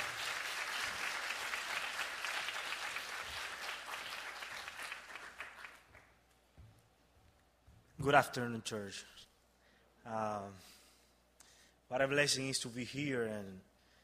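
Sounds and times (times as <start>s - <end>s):
audience applause: 0.0s - 6.1s
speech: 8.0s - 9.2s, 10.1s - 10.8s, 11.9s - 13.7s.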